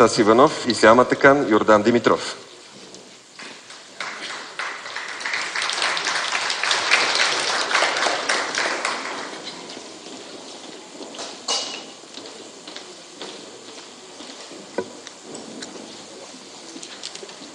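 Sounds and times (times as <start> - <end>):
speech: 0.0 - 2.5
audience applause at an on-stage ceremony: 3.3 - 11.5.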